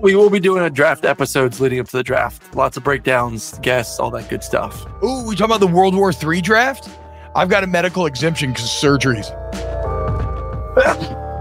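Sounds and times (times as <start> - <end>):
speech: 0.0 - 9.7
person sneezing: 10.7 - 11.3.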